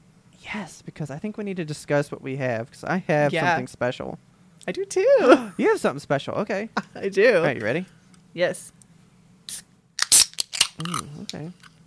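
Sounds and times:
speech: 0.5 - 8.8, 10.8 - 11.7
beverage can being cracked open: 10.0 - 11.1.

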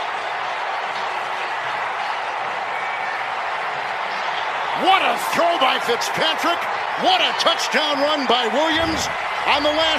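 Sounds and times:
stadium crowd cheering after touchdown: 0.0 - 9.9
speech: 4.8 - 9.9.

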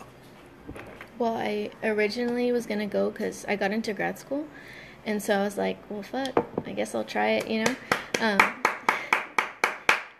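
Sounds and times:
speech: 0.7 - 8.6
applause: 7.9 - 10.1.

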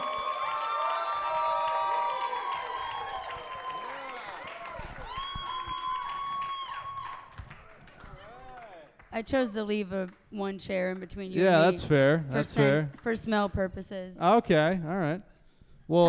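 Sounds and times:
audience cheering and whooping: 0.0 - 7.5
audience applause: 0.0 - 9.1
speech: 9.2 - 15.3, 15.9 - 16.0.

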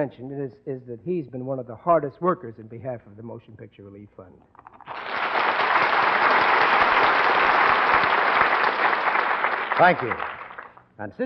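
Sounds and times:
speech: 0.0 - 4.8, 9.8 - 10.4, 11.0 - 11.2
studio audience applause: 4.7 - 10.8.

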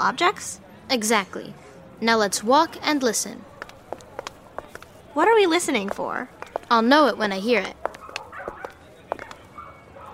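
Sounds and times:
speech: 0.0 - 3.5, 5.2 - 7.8
dog barks in a pet store: 7.9 - 10.1.

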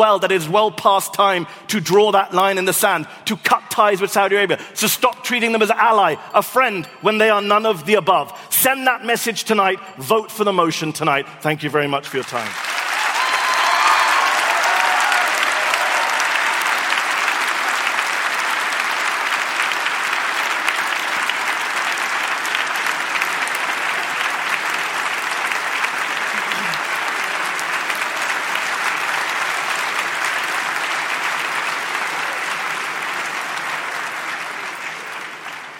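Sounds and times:
speech: 0.0 - 12.7
large audience applause: 12.2 - 35.7.

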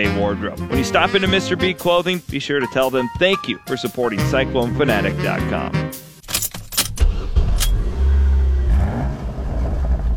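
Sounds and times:
speech: 0.0 - 5.9
sharp clicks and rattles: 6.2 - 7.8
Ford Mustang Fastback engine revving: 6.4 - 10.1.

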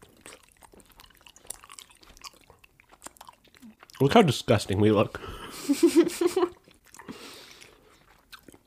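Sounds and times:
loud chewing of raw honeycomb: 0.0 - 4.6, 6.4 - 8.6
speech: 4.0 - 6.6.

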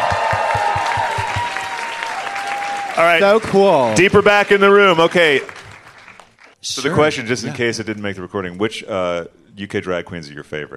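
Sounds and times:
crowd cheering and applauding: 0.0 - 6.6
speech: 3.0 - 5.6, 6.6 - 10.7.

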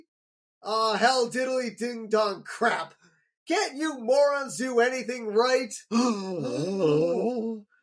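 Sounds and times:
speech: 0.6 - 7.7
person mimicking a crowd's shocked gasp: 5.9 - 7.6.

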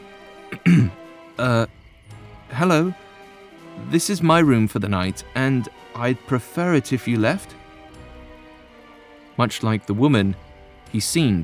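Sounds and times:
person clearing throat: 0.5 - 1.6
speech: 0.7 - 1.8, 2.6 - 3.0, 3.8 - 7.6, 9.4 - 11.4.

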